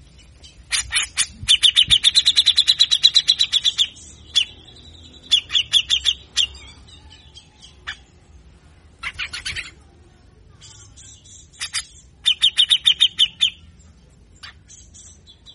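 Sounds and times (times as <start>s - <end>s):
grey-cheeked bulbul rasping chatter: 0.6s - 7.0s, 9.0s - 9.8s, 10.7s - 13.7s.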